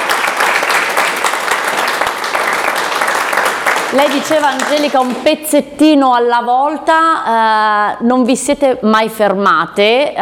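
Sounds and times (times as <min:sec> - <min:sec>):
audience applause: 0:00.0 - 0:05.3
speech: 0:03.9 - 0:10.1.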